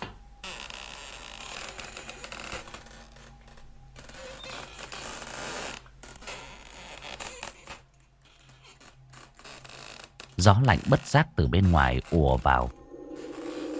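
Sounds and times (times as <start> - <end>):
window slowly creaking open: 0.0 - 13.7
speech: 10.4 - 12.8.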